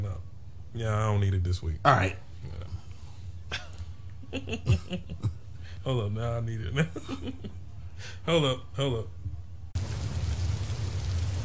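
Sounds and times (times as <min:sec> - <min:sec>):
speech: 0:00.7 - 0:02.7, 0:04.3 - 0:09.2
laughter: 0:03.5 - 0:05.4, 0:06.8 - 0:07.6
rain falling outside: 0:09.8 - 0:11.4.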